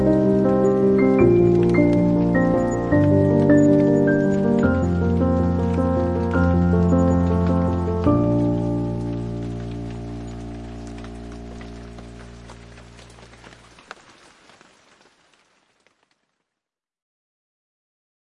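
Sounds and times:
calming piano music: 0:00.0 - 0:14.0
rain: 0:00.0 - 0:16.5.

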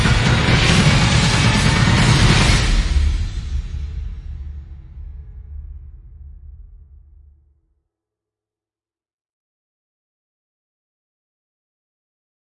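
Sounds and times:
relentless tribal percussion: 0:00.0 - 0:06.8.

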